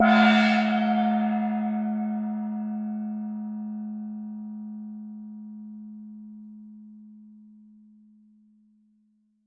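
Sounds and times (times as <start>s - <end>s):
gong: 0.0s - 7.5s.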